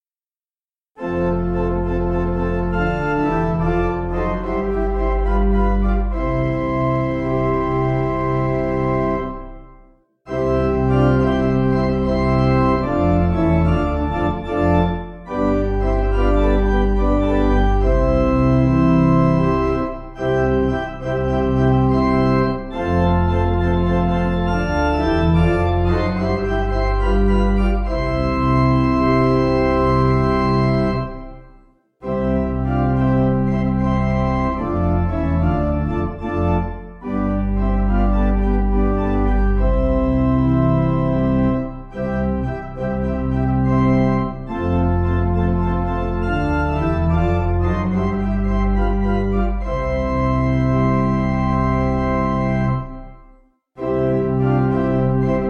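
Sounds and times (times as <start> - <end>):
pipe organ: 1.0 - 55.4.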